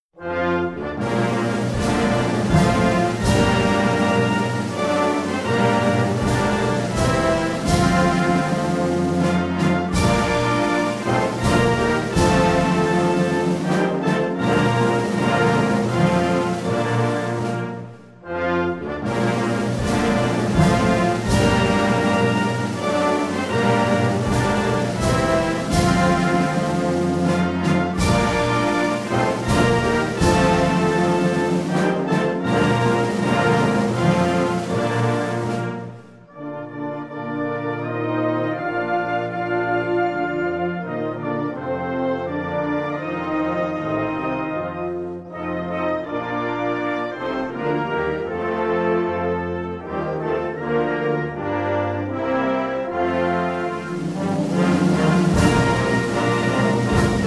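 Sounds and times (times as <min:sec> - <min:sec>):
instrumental hymn: 0:00.2 - 0:57.2.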